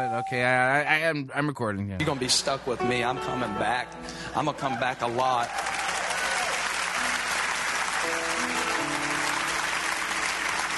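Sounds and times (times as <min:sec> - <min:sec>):
speech: 0:00.1 - 0:05.7
audience clapping: 0:04.6 - 0:10.7.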